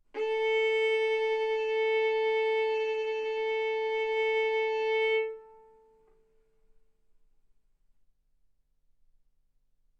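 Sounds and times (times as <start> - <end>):
violin arco on A string: 0.2 - 6.0.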